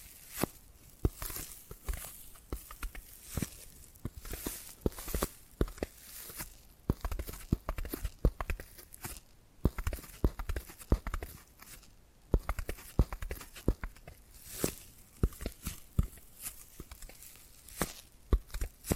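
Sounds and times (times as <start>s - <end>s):
tapping and scratching: 0.4s - 18.9s.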